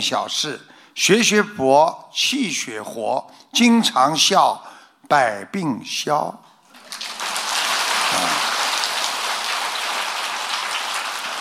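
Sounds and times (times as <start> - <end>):
speech: 0.0 - 6.4
crowd applause: 6.8 - 11.3.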